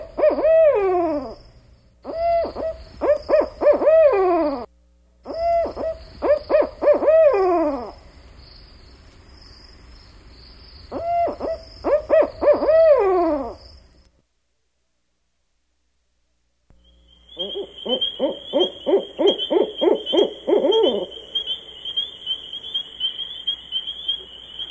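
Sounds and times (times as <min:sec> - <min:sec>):
barred owl hooting: 0:00.0 - 0:08.0, 0:10.9 - 0:13.6, 0:16.8 - 0:24.6.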